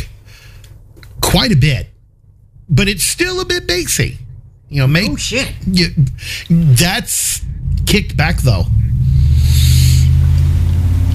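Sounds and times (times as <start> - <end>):
speech: 1.3 - 1.9, 2.7 - 8.8
car needing a muffler roaring past with a deep throbbing rumble: 7.4 - 11.1.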